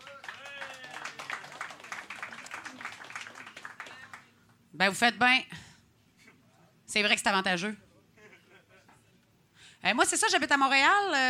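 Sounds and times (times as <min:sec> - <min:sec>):
audience applause at a live show: 0:00.0 - 0:04.3
speech: 0:04.8 - 0:05.6, 0:06.9 - 0:07.8, 0:09.8 - 0:11.2.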